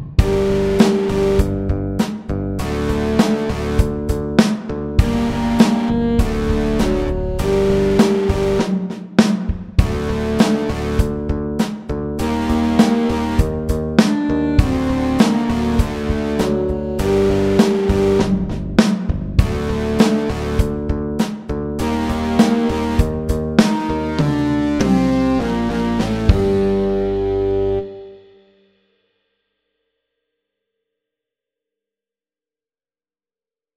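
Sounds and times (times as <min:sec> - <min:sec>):
electric rock music: 0:00.2 - 0:08.8, 0:09.8 - 0:28.0.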